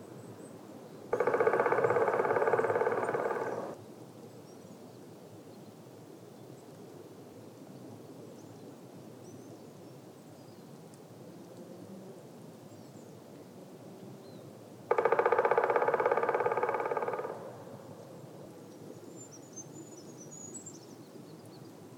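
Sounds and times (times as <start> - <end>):
black woodpecker calling: 1.2 - 3.8, 14.9 - 17.7.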